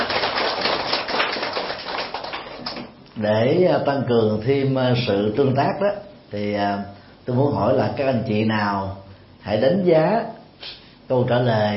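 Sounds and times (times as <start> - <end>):
loud applause: 0.0 - 2.9
speech: 3.2 - 11.7.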